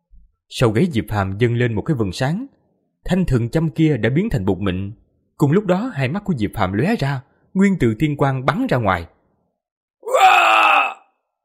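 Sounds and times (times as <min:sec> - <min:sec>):
speech: 0:00.5 - 0:09.1
anguished scream of a dying man: 0:10.0 - 0:11.0.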